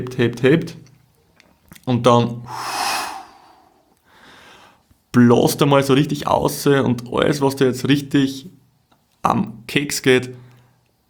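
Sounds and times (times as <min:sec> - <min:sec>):
speech: 0:00.0 - 0:00.8, 0:01.9 - 0:02.8, 0:05.2 - 0:08.6, 0:09.2 - 0:10.4
deep breath in during a relaxation breathing exercise: 0:02.5 - 0:04.8.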